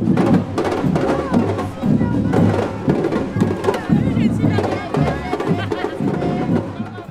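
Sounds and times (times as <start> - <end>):
festive crowd marching and dancing: 0.0 - 7.0
laughter: 0.1 - 7.0.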